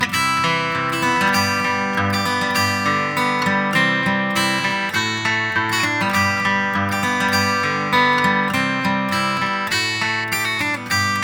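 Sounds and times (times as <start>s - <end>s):
acoustic guitar: 0.0s - 11.2s.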